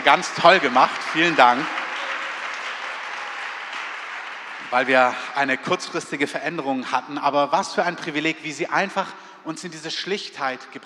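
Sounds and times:
speech: 0.0s - 1.8s, 4.7s - 10.8s
audience applause: 0.0s - 6.1s.

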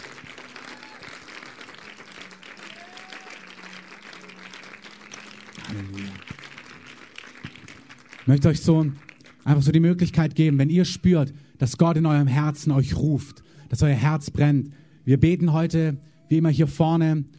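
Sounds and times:
audience applauding: 0.0s - 9.8s
murmuring voices: 5.6s - 6.3s
speech: 5.7s - 6.6s, 8.3s - 17.3s.

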